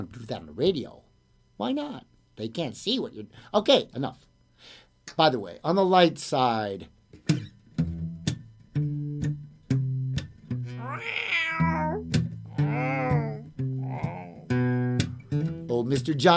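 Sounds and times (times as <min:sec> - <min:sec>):
speech: 0:00.0 - 0:01.0, 0:01.6 - 0:07.4, 0:15.9 - 0:16.3
bouncy musical beat with a low plucked bass: 0:07.3 - 0:10.9, 0:11.6 - 0:15.8
old yellow cat meowing: 0:10.8 - 0:14.6.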